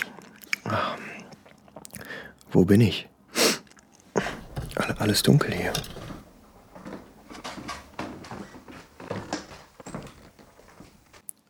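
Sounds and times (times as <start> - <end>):
speech: 0.7 - 1.1, 2.5 - 3.1, 5.0 - 6.0
door opening: 4.2 - 11.1.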